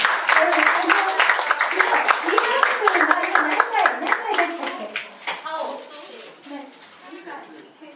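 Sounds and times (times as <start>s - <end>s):
audience clapping: 0.0s - 5.6s.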